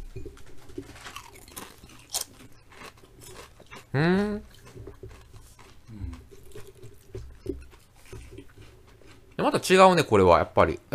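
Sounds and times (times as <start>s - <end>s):
potato chips crunching while eaten: 0.0s - 10.2s
speech: 3.9s - 4.5s, 9.4s - 10.9s.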